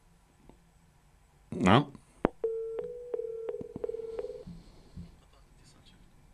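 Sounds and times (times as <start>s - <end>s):
speech: 1.7s - 2.0s
phone busy signal beeps: 2.5s - 4.4s.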